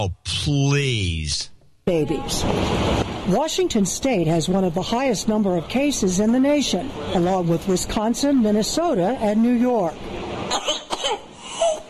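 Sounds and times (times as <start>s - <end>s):
speech: 0.0s - 10.3s
harsh whooping cough coughing fit: 10.5s - 11.8s.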